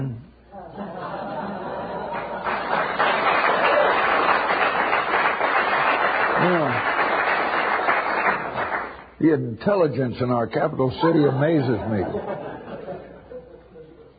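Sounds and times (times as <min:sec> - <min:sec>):
laughter: 0:00.6 - 0:04.0, 0:11.0 - 0:14.1
applause: 0:02.1 - 0:09.1
speech: 0:09.2 - 0:12.5.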